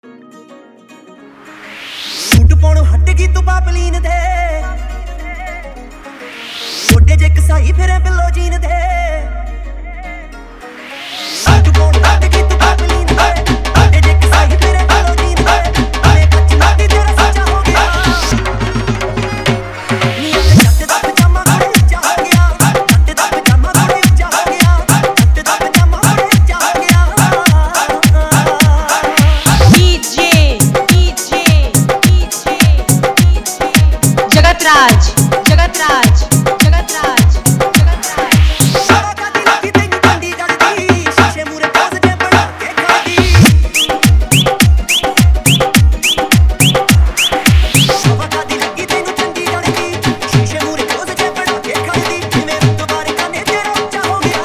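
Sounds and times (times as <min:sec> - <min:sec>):
Punjabi song mix: 0:01.0 - 0:54.4.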